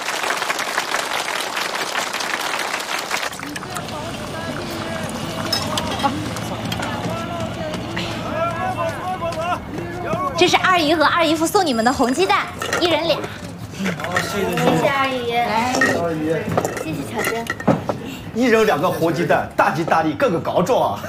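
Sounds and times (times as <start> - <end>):
group clapping: 0.0 - 10.0
people chattering: 1.8 - 21.0
speech: 10.4 - 17.6, 18.4 - 21.0.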